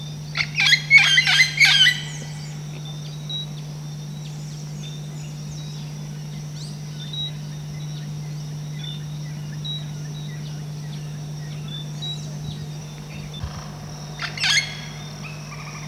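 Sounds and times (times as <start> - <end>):
red-tailed amazon squawking: 0.4 - 2.3, 14.2 - 15.8.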